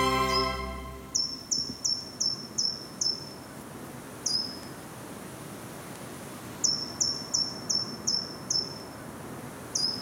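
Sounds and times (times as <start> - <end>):
short-toed treecreeper calling at dusk between Wassenaar and Valkenburg: 0.1 - 3.5, 4.2 - 4.8, 6.6 - 9.0, 9.7 - 10.0.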